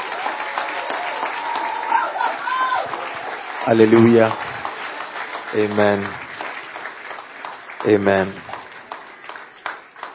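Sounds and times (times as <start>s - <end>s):
audience applause welcoming Apostle Joshua Selman at a church gathering in London: 0.0s - 10.1s
speech: 3.6s - 4.5s, 5.5s - 6.2s, 7.8s - 8.5s.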